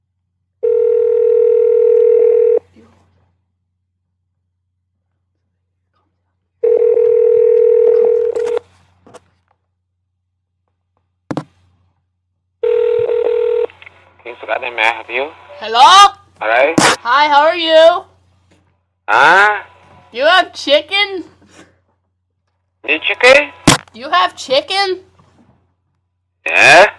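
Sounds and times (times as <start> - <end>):
telephone line tone: 0.6 - 2.6, 6.6 - 8.6, 12.6 - 13.7
speech: 14.7 - 18.1, 19.1 - 21.3, 22.9 - 25.1, 26.5 - 26.9.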